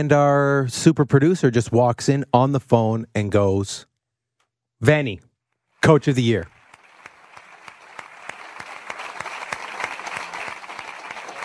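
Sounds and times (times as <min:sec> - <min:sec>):
speech: 0:00.0 - 0:03.9, 0:04.8 - 0:06.6
applause sound effect from soundboard: 0:05.8 - 0:11.4.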